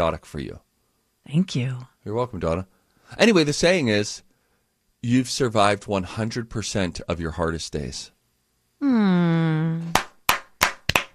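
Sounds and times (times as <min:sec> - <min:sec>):
speech: 0:00.0 - 0:00.6, 0:01.2 - 0:04.3, 0:05.0 - 0:08.2, 0:08.8 - 0:10.0
person humming a long low hmm: 0:08.8 - 0:10.0
spontaneous hand claps: 0:09.8 - 0:11.1.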